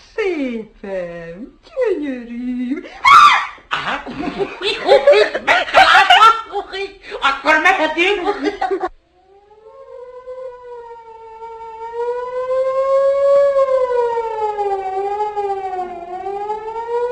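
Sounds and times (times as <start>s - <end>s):
speech: 0.4s - 6.0s, 6.6s - 8.9s
laughter: 3.7s - 6.8s, 7.8s - 8.9s
fire siren wailing: 9.2s - 17.1s.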